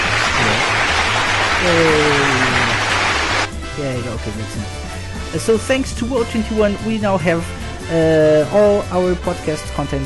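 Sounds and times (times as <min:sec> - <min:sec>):
applause sound effect: 0:00.0 - 0:03.6
speech: 0:01.6 - 0:02.3, 0:03.8 - 0:10.0.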